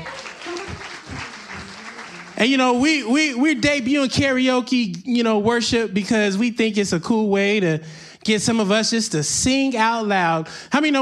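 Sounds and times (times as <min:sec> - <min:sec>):
audience applause: 0:00.0 - 0:02.7
speech: 0:02.4 - 0:11.0.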